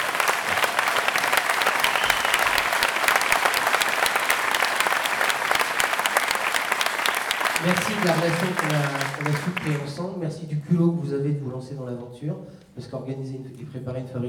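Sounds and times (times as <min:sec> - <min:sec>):
sustained audience applause: 0:00.0 - 0:10.0
speech: 0:07.6 - 0:14.2.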